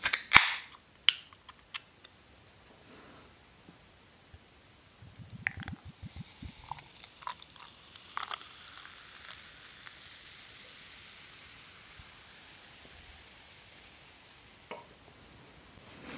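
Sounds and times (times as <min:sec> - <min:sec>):
beer can opening: 0:00.0 - 0:01.9, 0:05.4 - 0:10.2
light fizzing: 0:05.4 - 0:14.6.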